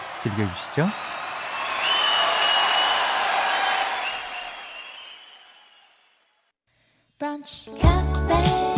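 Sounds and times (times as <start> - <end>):
crowd applause: 0.0 - 6.0
speech: 0.2 - 1.2, 7.3 - 8.6
high whistles: 1.1 - 3.2, 3.9 - 6.3.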